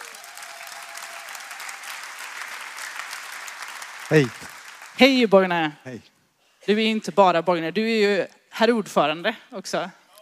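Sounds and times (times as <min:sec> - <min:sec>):
audience applause: 0:00.0 - 0:05.0
speech: 0:04.1 - 0:10.0.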